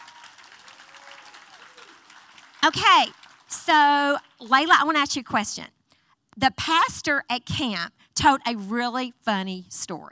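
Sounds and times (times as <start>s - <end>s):
audience clapping for kids: 0.0s - 4.9s
speech: 2.6s - 5.8s, 6.4s - 10.1s.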